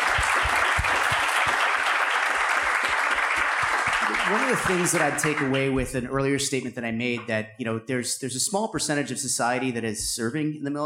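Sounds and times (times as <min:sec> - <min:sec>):
audience applause: 0:00.0 - 0:05.8
speech: 0:04.3 - 0:10.8.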